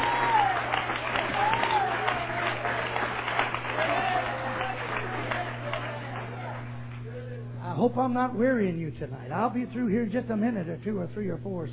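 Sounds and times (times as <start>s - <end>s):
audience clapping hands: 0.0s - 7.2s
low hum: 0.0s - 11.7s
speech: 7.9s - 11.7s.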